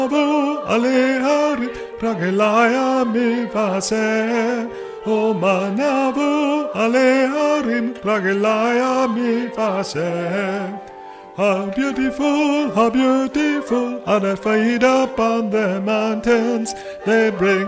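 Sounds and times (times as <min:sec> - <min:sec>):
tenor singing: 0:00.0 - 0:17.6.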